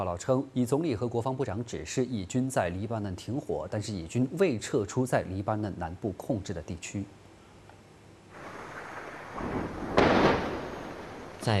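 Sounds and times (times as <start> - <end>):
speech: 0.0 - 7.2
large explosion from an airstrike: 8.4 - 11.4.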